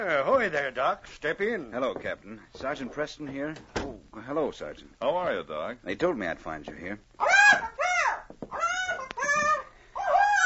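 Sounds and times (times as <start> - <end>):
speech: 0.0 - 7.7
bird squawking: 7.2 - 10.4.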